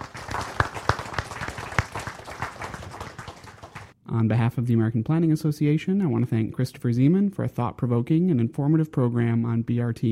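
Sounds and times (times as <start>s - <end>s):
audience applause: 0.0s - 4.0s
speech: 4.2s - 10.0s.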